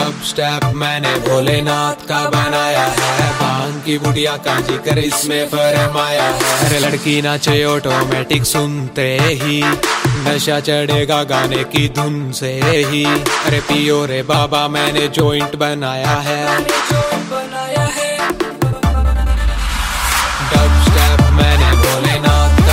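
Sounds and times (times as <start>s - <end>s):
dubstep music: 0.0s - 22.7s.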